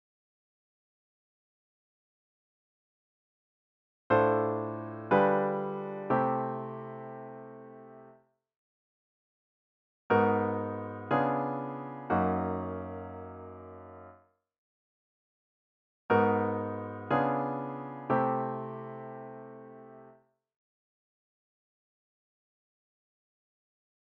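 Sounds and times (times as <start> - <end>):
music with tritone pivot: 4.1 - 8.4, 10.1 - 14.4, 16.1 - 20.4.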